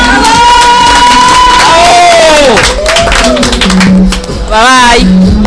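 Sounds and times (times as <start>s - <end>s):
crowd cheering: 0.0s - 3.9s
audience applause: 0.0s - 4.3s
speech: 4.6s - 5.3s.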